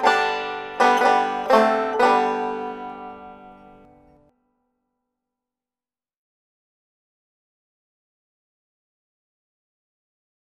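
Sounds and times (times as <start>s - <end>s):
banjo: 0.0s - 4.3s.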